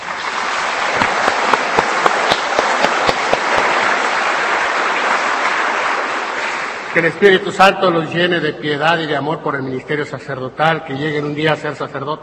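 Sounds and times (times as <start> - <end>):
crowd applause: 0.0 - 7.5
speech: 7.0 - 12.2.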